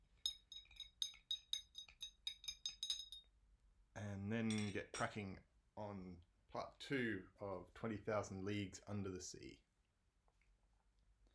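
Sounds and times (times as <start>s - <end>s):
spoon stirring sugar into a glass of tea: 0.0s - 3.3s
speech: 4.0s - 9.6s.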